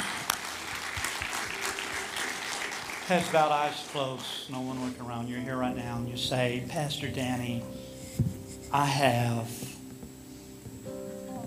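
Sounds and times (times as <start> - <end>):
church congregation clapping as a clap offering: 0.0 - 5.0
speech: 3.1 - 9.6.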